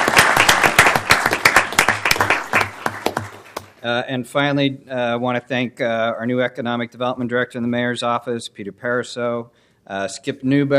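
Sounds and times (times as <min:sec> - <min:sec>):
audience applause for commissioners: 0:00.0 - 0:03.7
speech: 0:03.8 - 0:10.7.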